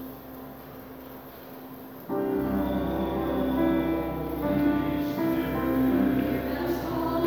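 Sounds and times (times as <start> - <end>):
choir singing: 2.0 - 7.2.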